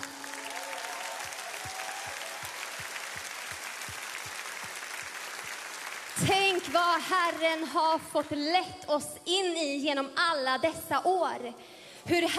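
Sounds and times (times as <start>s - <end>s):
audience applause: 0.0s - 7.5s
speech: 6.2s - 12.3s.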